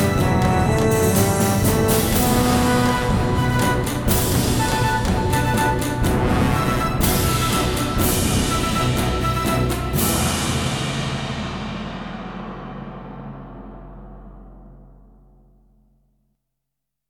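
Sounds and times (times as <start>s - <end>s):
battle music: 0.0s - 13.5s.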